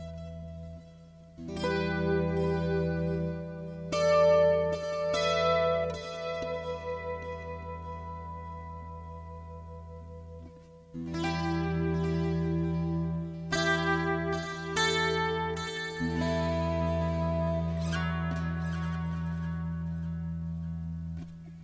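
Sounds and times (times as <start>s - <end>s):
guitar motif played with volume pedal: 0.0s - 21.6s.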